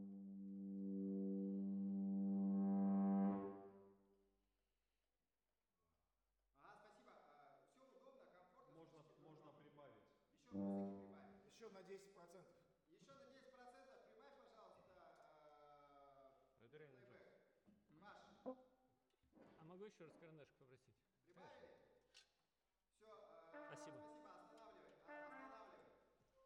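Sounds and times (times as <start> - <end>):
trombones: 0.0 - 3.9, 10.5 - 11.5, 23.5 - 26.0.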